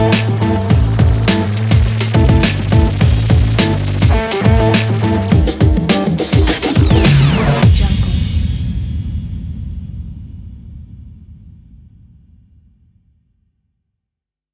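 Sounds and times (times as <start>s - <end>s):
rock beat on a sports drum kit: 0.0s - 9.2s.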